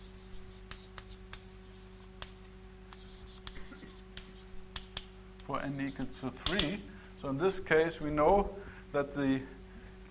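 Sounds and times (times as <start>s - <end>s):
hand drawing a diagram on a board during a mathematics lecture: 0.0s - 6.8s
speech: 5.5s - 9.6s.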